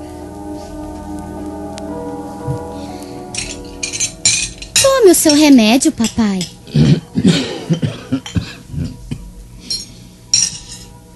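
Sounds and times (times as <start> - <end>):
wine glass set down on a bar counter: 3.3 - 6.6, 9.7 - 10.9
speech: 5.1 - 7.9.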